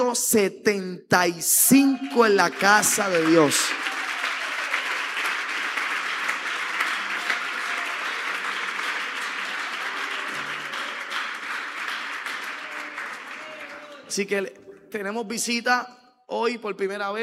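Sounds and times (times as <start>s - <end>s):
speech: 0.1s - 4.0s, 14.2s - 17.2s
audience applause: 1.7s - 14.2s.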